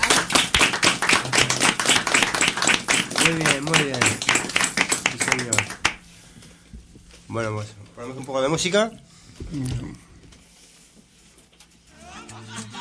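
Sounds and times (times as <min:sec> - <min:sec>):
audience applause: 0:00.0 - 0:06.0
speech: 0:03.3 - 0:03.9, 0:07.3 - 0:10.0.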